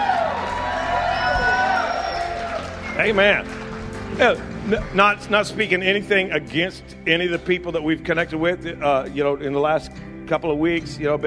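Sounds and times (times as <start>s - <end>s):
crowd whoops: 0.0s - 3.5s
audience applause: 0.0s - 5.4s
speech: 3.0s - 11.2s.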